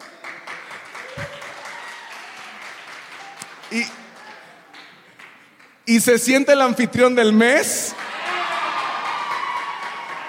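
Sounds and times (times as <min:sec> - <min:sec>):
applause: 0:00.0 - 0:05.8, 0:07.9 - 0:10.2
speech: 0:03.7 - 0:04.0, 0:05.9 - 0:08.0.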